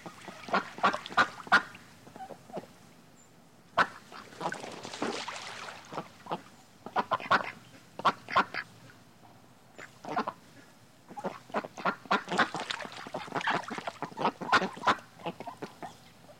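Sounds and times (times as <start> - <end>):
ducks quacking: 0.0 - 2.7, 5.9 - 8.7, 9.8 - 16.0.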